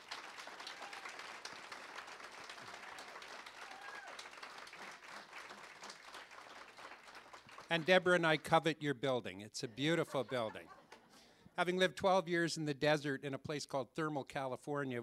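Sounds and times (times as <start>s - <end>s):
audience applause: 0.0s - 8.5s
speech: 7.7s - 10.8s, 11.6s - 15.0s
laughter: 9.6s - 11.3s.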